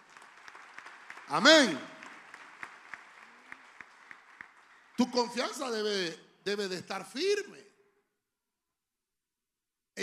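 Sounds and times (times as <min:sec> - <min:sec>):
audience clapping hands: 0:00.0 - 0:06.2
speech: 0:01.3 - 0:01.9, 0:05.0 - 0:07.7.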